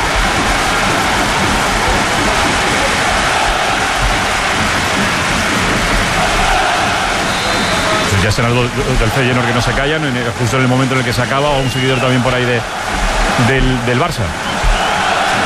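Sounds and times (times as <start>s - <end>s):
rain falling in a stadium: 0.0s - 15.4s
speech: 8.2s - 14.5s.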